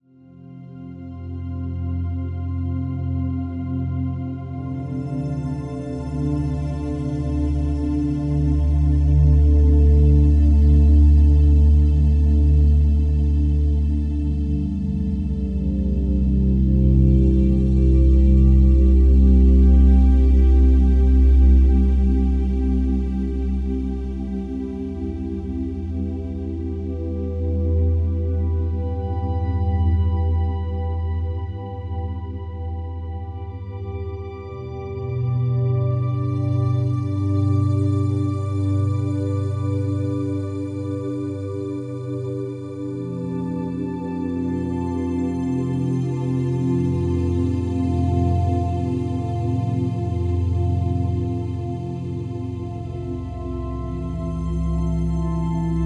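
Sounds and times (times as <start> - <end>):
relaxing music: 0.0 - 55.8.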